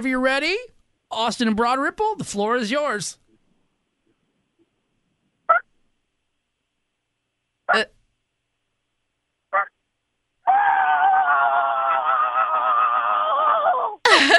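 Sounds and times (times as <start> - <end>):
speech: 0.0 - 3.2, 7.7 - 8.0
person imitating a chicken: 10.4 - 14.1
laughter: 14.1 - 14.3.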